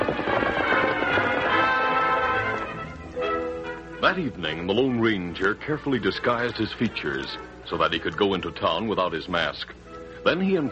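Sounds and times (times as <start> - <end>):
horses' hooves clip-clopping as riders set off: 0.0 - 3.8
speech: 4.0 - 10.6.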